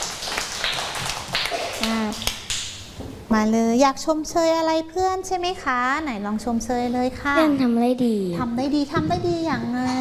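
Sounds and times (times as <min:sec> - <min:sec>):
classroom applause: 0:00.0 - 0:02.7
speech: 0:03.3 - 0:10.0.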